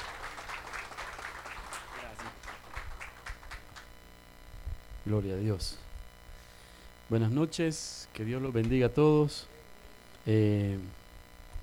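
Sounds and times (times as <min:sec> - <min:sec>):
audience applause welcoming a speaker: 0:00.0 - 0:03.9
speech: 0:05.0 - 0:05.8, 0:07.1 - 0:09.5, 0:10.2 - 0:11.0.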